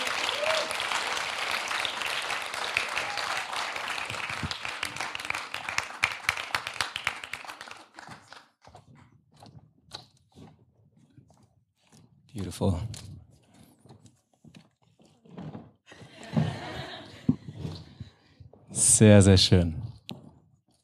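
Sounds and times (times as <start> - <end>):
audience applause: 0.0 - 8.4
speech: 12.5 - 13.0, 19.0 - 19.8
laughter: 15.9 - 17.7.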